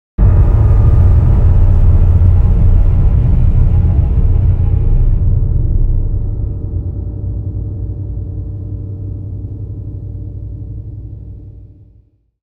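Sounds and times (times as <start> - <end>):
orchestra hit: 0.2 - 7.7.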